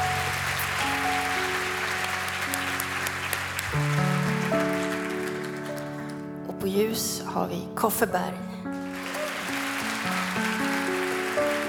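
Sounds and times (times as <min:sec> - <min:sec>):
audience applause at a live show: 0:00.0 - 0:06.4, 0:08.8 - 0:11.6
speech: 0:06.7 - 0:08.6.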